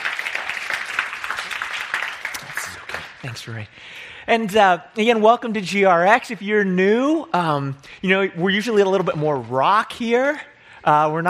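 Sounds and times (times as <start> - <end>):
audience applauding a quartet: 0.0 - 3.6
speech: 3.2 - 11.2.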